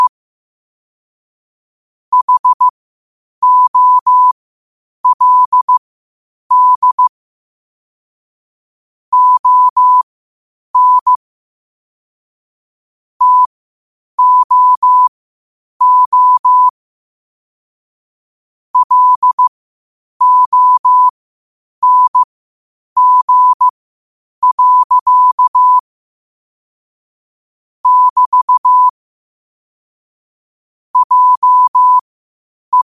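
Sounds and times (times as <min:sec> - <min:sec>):
morse code at 5 wpm: 0:02.1 - 0:02.7, 0:03.4 - 0:04.4, 0:05.0 - 0:05.8, 0:06.5 - 0:07.1, 0:09.1 - 0:10.0, 0:10.8 - 0:11.2, 0:13.2 - 0:13.5, 0:14.2 - 0:15.1, 0:15.8 - 0:16.7, 0:18.8 - 0:19.5, 0:20.2 - 0:21.1, 0:21.8 - 0:22.2, 0:23.0 - 0:23.7, 0:24.4 - 0:25.8, 0:27.8 - 0:29.0, 0:31.0 - 0:32.0.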